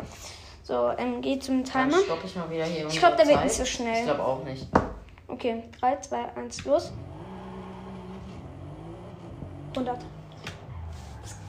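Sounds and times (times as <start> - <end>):
speech: 0.7 - 7.1, 9.8 - 10.2
racing game car engine revving and accelerating: 6.6 - 11.4.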